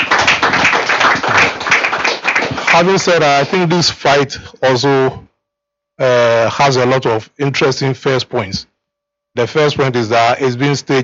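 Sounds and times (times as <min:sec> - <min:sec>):
audience round of applause at an event promoting a boxing fight: 0:00.0 - 0:03.7
speech: 0:02.8 - 0:05.2, 0:06.0 - 0:08.7, 0:09.4 - 0:11.0.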